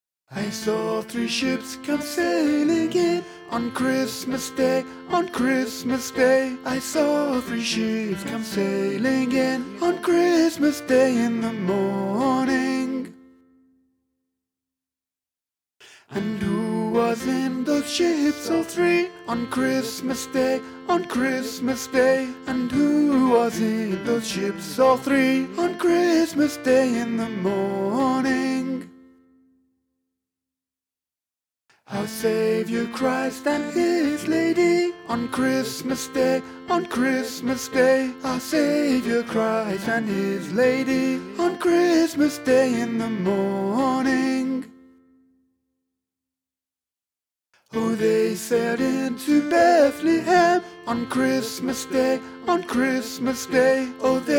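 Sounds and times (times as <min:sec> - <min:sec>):
tenor singing: 0:00.3 - 0:13.1, 0:16.1 - 0:28.8, 0:31.9 - 0:44.6, 0:47.8 - 0:54.3.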